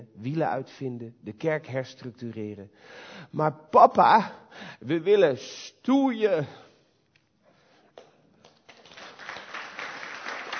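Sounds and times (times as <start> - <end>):
speech: 0.1 - 6.6
audience applause: 8.4 - 10.5.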